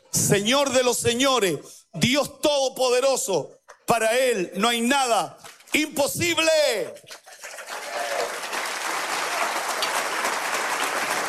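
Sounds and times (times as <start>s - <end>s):
speech: 0.3s - 7.2s
audience applause: 7.2s - 11.2s.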